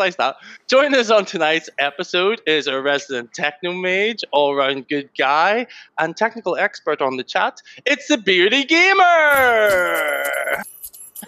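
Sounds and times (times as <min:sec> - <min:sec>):
speech: 0:00.0 - 0:11.2
person imitating horse neigh: 0:09.3 - 0:10.7.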